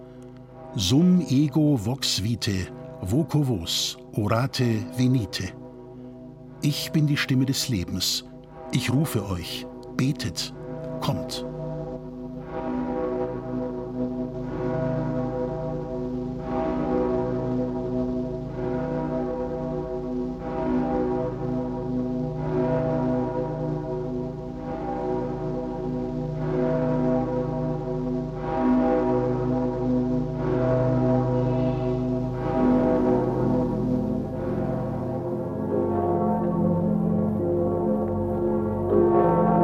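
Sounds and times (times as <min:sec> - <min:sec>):
deep church bells ringing: 0:00.0 - 0:39.6
speech: 0:00.7 - 0:05.6, 0:06.6 - 0:11.5.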